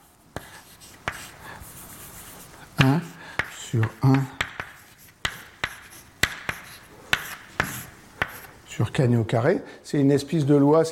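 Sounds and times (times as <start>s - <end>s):
faint writing while an equation is written out: 0.0s - 8.7s
writing tool taps: 0.4s - 1.3s, 2.8s - 8.5s
speech: 3.7s - 4.4s, 9.0s - 10.9s.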